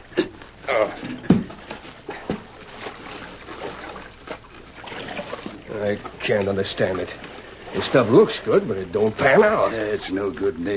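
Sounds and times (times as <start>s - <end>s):
speech: 0.7s - 1.3s, 5.8s - 10.7s
creek water splashing and trickling: 1.5s - 10.7s.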